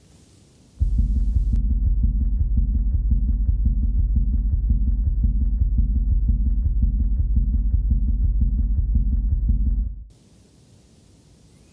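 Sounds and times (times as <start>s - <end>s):
atrial flutter heart tones in the right atrium: 0.8s - 10.1s.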